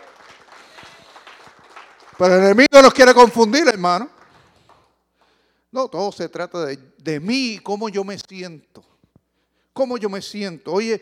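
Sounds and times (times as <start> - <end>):
audience applauding: 0.0 - 2.7, 3.8 - 5.0
speech: 2.2 - 4.2, 5.7 - 8.9, 9.8 - 10.9.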